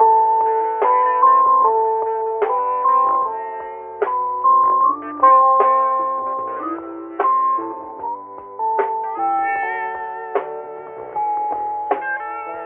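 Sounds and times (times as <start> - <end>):
keyboard playing: 0.0 - 12.6.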